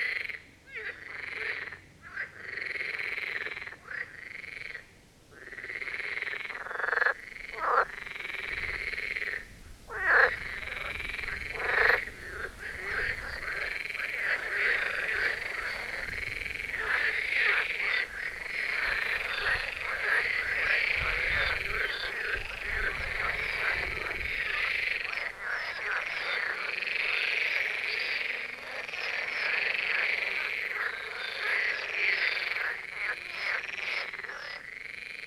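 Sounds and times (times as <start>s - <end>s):
marsh frogs croaking chorus: 0.0s - 35.2s.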